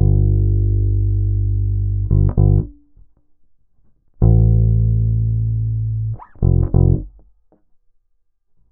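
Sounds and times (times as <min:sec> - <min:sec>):
bass: 0:00.0 - 0:07.7.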